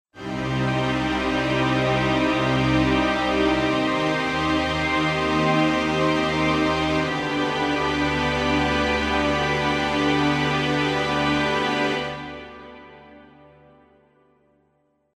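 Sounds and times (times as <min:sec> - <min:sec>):
tragic orchestral string ensemble: 0:00.2 - 0:13.4.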